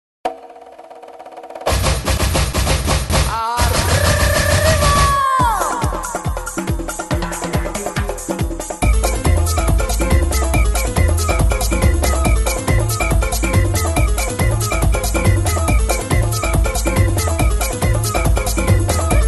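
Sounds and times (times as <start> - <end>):
samba carnival music: 0.3 - 19.2.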